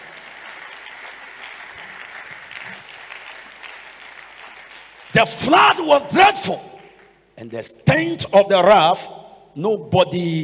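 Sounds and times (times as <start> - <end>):
audience clapping: 0.0 - 7.2
speech: 5.2 - 6.7, 7.4 - 10.4.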